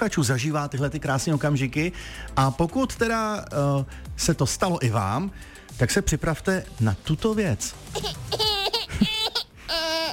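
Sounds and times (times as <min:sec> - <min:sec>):
speech: 0:00.0 - 0:08.5
small baby crying: 0:07.9 - 0:10.1.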